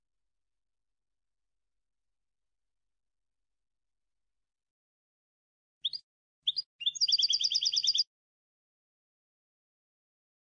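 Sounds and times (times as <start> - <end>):
European goldfinch song: 5.8 - 8.1.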